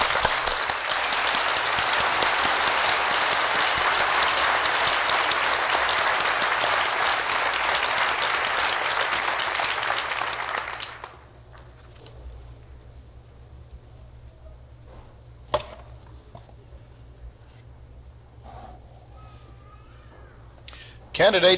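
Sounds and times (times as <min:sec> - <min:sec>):
audience applause for graduates: 0:00.0 - 0:11.3.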